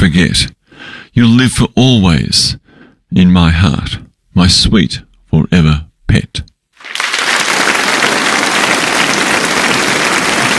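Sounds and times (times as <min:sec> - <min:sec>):
speech: 0:00.0 - 0:00.6, 0:01.2 - 0:06.5
crowd applause: 0:06.8 - 0:10.5.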